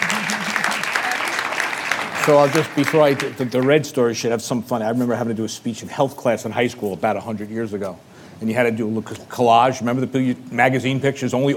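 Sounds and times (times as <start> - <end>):
audience applause: 0.0 - 4.0
speech: 2.3 - 11.5.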